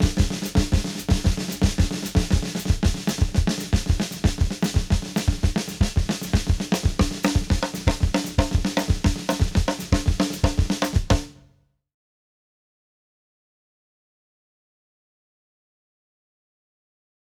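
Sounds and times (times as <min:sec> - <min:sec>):
samba snare drum patterns: 0:00.0 - 0:11.4.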